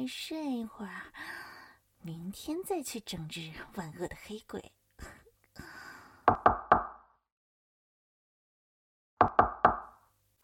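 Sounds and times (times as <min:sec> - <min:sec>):
speech: 0:00.0 - 0:01.4, 0:02.0 - 0:05.7
knocking on a door: 0:06.3 - 0:06.9, 0:09.2 - 0:09.8.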